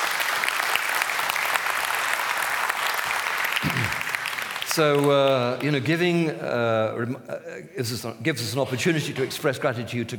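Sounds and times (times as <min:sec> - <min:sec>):
audience clapping: 0:00.0 - 0:06.2
speech: 0:04.8 - 0:10.1.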